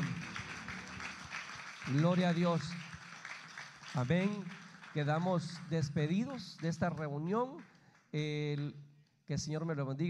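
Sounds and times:
audience applause: 0.0 - 5.8
speech: 1.9 - 2.9, 4.0 - 10.0.

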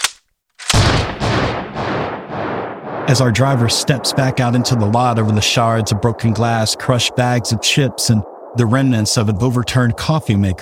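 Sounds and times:
shotgun blasts: 0.0 - 4.4
heavy rumbling booms: 0.8 - 10.5
speech: 3.1 - 10.5.

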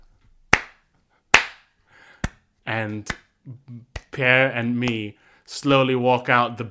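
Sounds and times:
two people slapping buttocks together: 0.5 - 2.4, 3.1 - 3.3
speech: 2.7 - 6.6.

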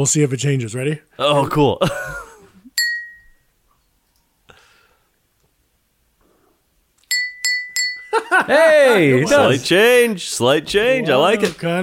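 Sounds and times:
speech: 0.0 - 2.2, 8.5 - 11.8
laughter: 1.8 - 2.6, 8.1 - 9.7
water glass struck to ring a note: 2.7 - 3.6, 7.1 - 8.2.

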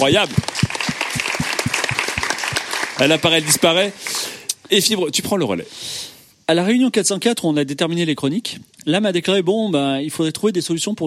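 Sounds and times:
speech: 0.0 - 1.3, 3.0 - 11.0
audience applause: 0.0 - 4.2.

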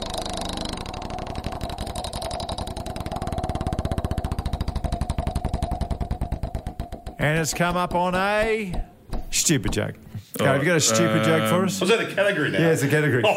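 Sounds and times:
joke wheel spinning: 0.0 - 7.2
speech: 7.2 - 13.3.

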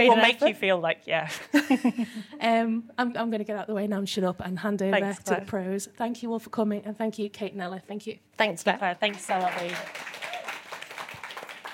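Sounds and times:
speech: 0.0 - 10.2
audience clapping: 9.0 - 11.7.

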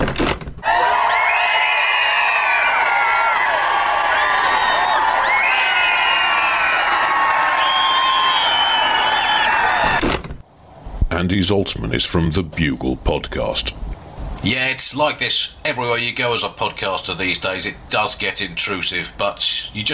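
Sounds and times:
crowd of fans cheering with whoops and whistles: 0.6 - 10.0
speech: 11.3 - 19.9.

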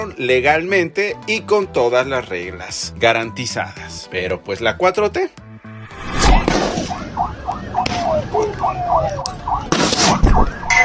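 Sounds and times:
speech: 0.0 - 5.4
loud bangs: 5.9 - 8.3
warbling siren: 6.0 - 10.8.

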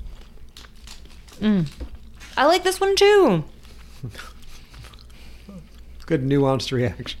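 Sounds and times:
biting and chewing crunchy food: 0.0 - 2.4, 3.5 - 6.2
speech: 1.4 - 4.3, 6.1 - 7.1.

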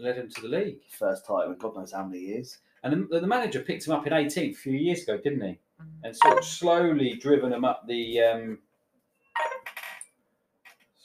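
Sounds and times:
speech: 0.0 - 8.7
phone notification alerts: 5.8 - 6.6.

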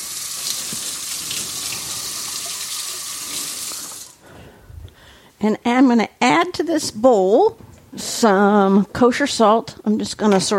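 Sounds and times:
water running from a tap while washing oil off hands: 0.0 - 4.2
speech: 5.4 - 10.5.

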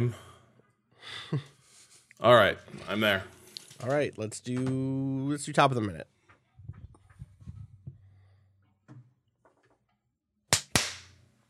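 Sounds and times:
speech: 0.0 - 0.2, 1.0 - 1.5, 2.2 - 6.1
hand claps: 10.5 - 11.2.

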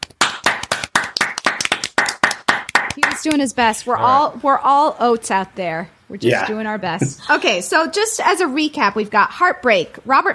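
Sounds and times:
audience clapping: 0.0 - 3.5
speech: 3.2 - 10.3.

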